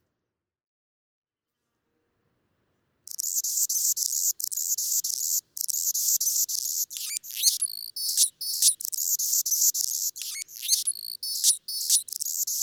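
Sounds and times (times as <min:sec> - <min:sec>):
Anna's hummingbird buzzing song: 0:03.1 - 0:12.6.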